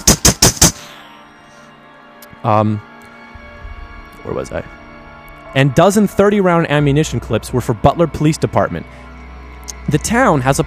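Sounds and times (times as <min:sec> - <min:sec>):
M16 rifle firing shots: 0:00.0 - 0:00.8
speech: 0:02.4 - 0:02.9, 0:04.2 - 0:04.8, 0:05.5 - 0:09.1, 0:09.8 - 0:10.6.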